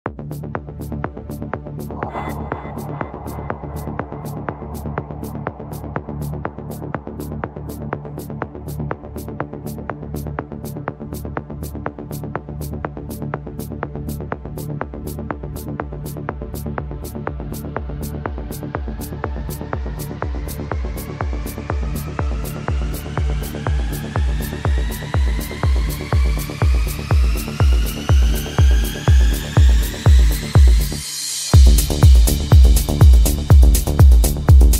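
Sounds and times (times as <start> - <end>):
ethno music mix: 1.7 - 11.2, 17.1 - 34.7.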